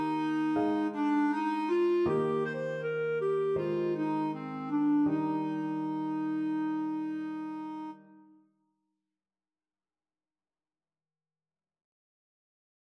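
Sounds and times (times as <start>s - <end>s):
clarinet melody: 0.0s - 8.4s.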